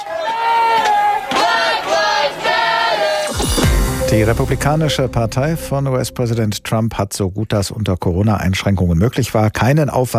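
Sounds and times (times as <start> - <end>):
protest crowd chanting outside the White House: 0.0 - 4.0
speech: 4.1 - 10.1.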